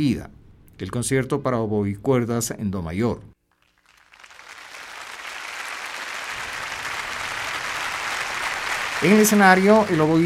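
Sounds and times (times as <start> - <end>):
speech: 0.0 - 3.3, 9.0 - 10.2
concert audience applause: 3.5 - 10.2.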